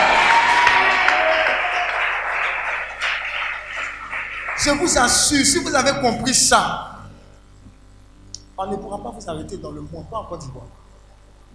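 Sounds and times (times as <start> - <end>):
church congregation cheering and applauding to acclaim God during a sermon: 0.0 - 6.0
speech: 4.6 - 6.9, 8.6 - 10.8.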